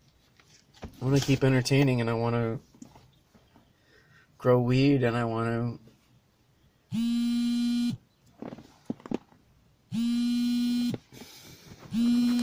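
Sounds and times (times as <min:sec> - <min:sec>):
speech: 0:01.0 - 0:02.7, 0:04.4 - 0:05.9
phone vibrating with incoming call: 0:06.9 - 0:08.0, 0:09.9 - 0:11.1, 0:11.8 - 0:12.4.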